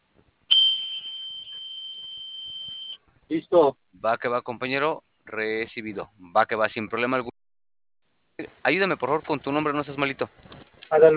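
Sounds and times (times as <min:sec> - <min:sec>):
panic button alarm tone: 0:00.5 - 0:03.0
speech: 0:03.3 - 0:07.3, 0:08.7 - 0:11.1.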